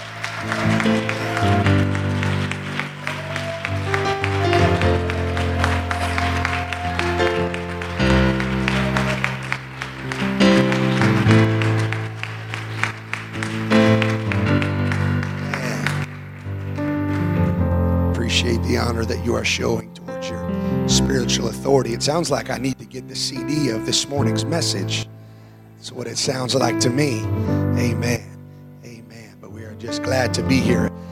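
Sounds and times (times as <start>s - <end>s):
audience clapping in appreciation: 0.0s - 18.7s
organ-like music with held chords: 0.0s - 31.1s
speech: 0.4s - 1.7s, 19.0s - 19.9s, 20.9s - 25.1s, 25.8s - 28.2s, 30.2s - 30.9s.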